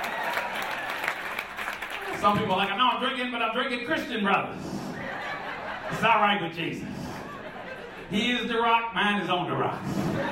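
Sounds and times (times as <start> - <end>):
audience applause: 0.0 - 2.9
speech: 2.2 - 4.8, 5.9 - 7.0, 8.1 - 10.3
laughter: 4.8 - 8.7, 9.6 - 10.3.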